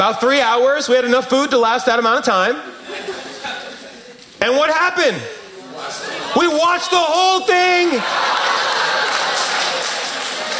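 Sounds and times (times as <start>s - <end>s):
speech: 0.0s - 3.1s, 4.4s - 9.0s
laughter: 2.7s - 4.2s, 5.2s - 10.5s
audience clapping: 6.4s - 10.5s.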